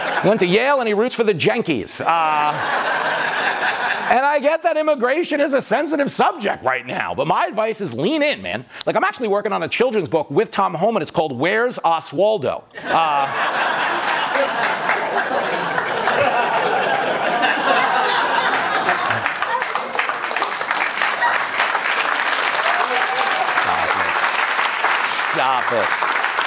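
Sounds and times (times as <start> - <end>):
crowd laughing: 0.0 - 0.6, 2.1 - 4.4, 12.8 - 24.4
speech: 0.2 - 14.8, 25.4 - 26.1
crowd applauding: 13.0 - 26.4.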